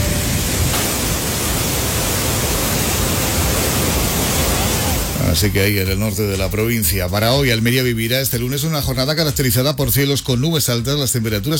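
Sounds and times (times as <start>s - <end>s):
rain falling: 0.0s - 5.8s
speech: 5.4s - 11.5s.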